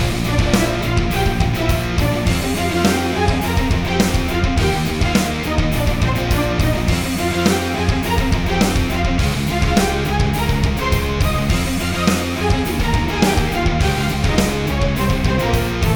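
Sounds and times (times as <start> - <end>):
cross-server battle game background music: 0.0 - 15.9.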